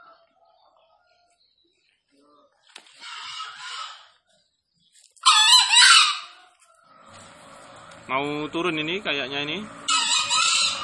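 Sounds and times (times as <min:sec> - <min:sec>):
green junglefowl crowing: 0:03.0 - 0:04.2, 0:05.2 - 0:07.5, 0:09.8 - 0:10.8
speech: 0:08.1 - 0:09.8.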